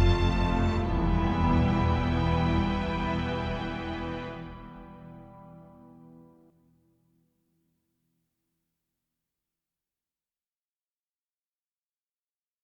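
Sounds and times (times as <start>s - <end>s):
ambient music: 0.0s - 6.5s.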